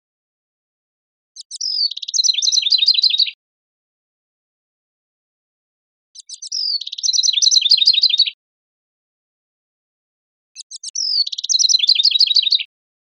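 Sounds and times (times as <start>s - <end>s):
house wren singing bubbly trilled phrases: 1.4s - 3.4s, 6.2s - 8.4s, 10.6s - 12.7s.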